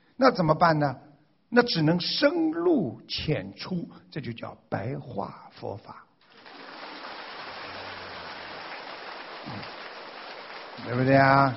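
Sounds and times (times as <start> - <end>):
speech: 0.2 - 6.1, 10.8 - 11.5
audience applause: 6.3 - 11.5.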